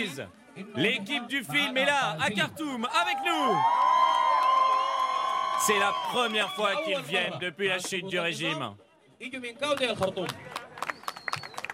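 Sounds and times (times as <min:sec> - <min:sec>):
speech: 0:00.0 - 0:03.9, 0:05.6 - 0:10.5
film audience applause: 0:03.3 - 0:06.7, 0:10.4 - 0:11.7.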